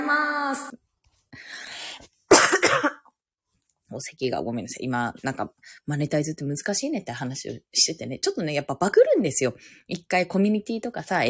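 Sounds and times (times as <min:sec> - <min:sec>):
person coughing: 0:02.3 - 0:03.1
speech: 0:04.0 - 0:11.2.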